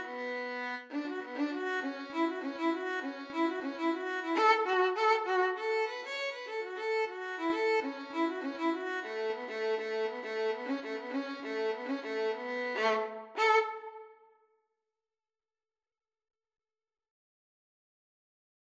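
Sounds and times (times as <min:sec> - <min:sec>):
violin and cello duet playing a rag: 0:00.0 - 0:14.1.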